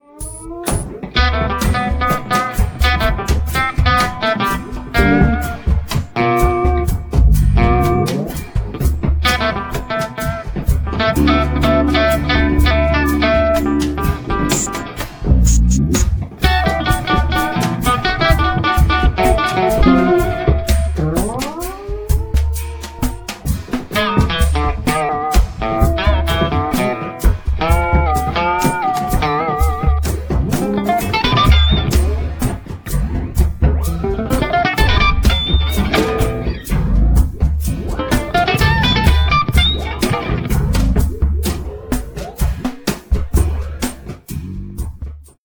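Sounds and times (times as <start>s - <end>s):
tribal music: 0.0s - 45.4s.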